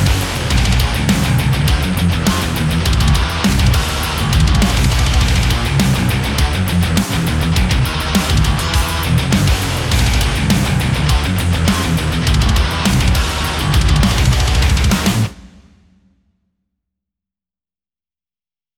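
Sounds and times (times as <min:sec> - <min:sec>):
high-gain electric guitar through a Kemper amp: 0:00.0 - 0:15.4.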